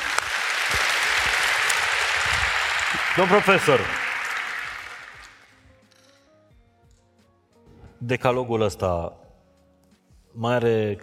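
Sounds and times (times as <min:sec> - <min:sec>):
small group applause: 0:00.0 - 0:05.6
speech: 0:03.2 - 0:04.0, 0:08.0 - 0:09.2, 0:10.4 - 0:11.0.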